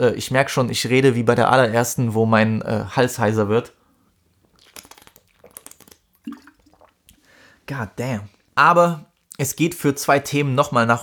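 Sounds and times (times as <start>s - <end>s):
speech: 0.0s - 3.8s, 7.7s - 11.0s
quick sip of a drink: 4.3s - 7.4s.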